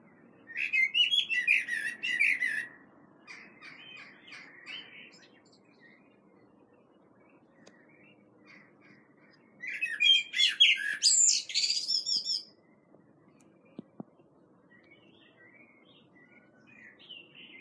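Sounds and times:
common blackbird Turdus merula singing: 0.0s - 17.5s.

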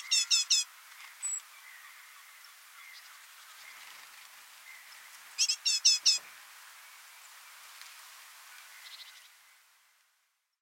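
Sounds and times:
great tit Parus major scratchy calls: 0.0s - 6.3s.

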